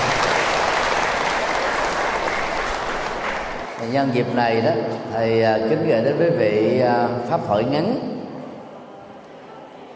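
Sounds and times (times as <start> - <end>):
big round of applause: 0.0 - 4.2
speech: 3.9 - 8.1.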